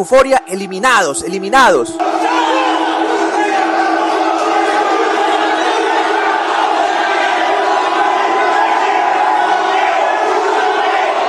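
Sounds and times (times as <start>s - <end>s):
speech: 0.0s - 2.8s
large crowd of rival football fans shouting angrily: 1.6s - 11.2s.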